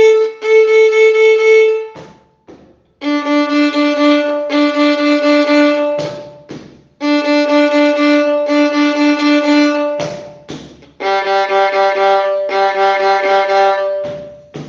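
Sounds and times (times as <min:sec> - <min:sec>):
second and third violins: 0:00.0 - 0:02.1, 0:03.0 - 0:14.5.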